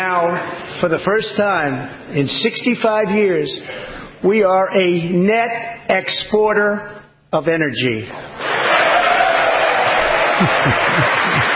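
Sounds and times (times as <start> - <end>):
speech: 0.0 - 8.5, 10.4 - 11.4
laughter: 8.2 - 11.5
clapping: 9.7 - 11.5.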